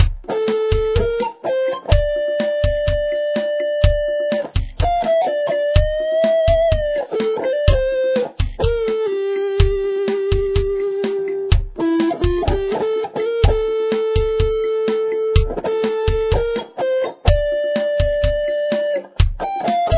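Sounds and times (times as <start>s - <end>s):
guitar: 0.0s - 19.9s.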